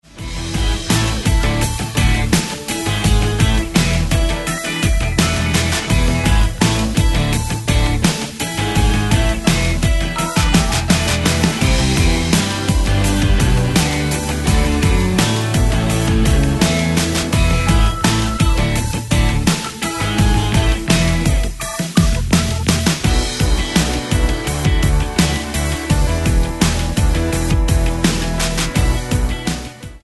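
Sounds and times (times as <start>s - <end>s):
karaoke singing: 0.2s - 29.9s.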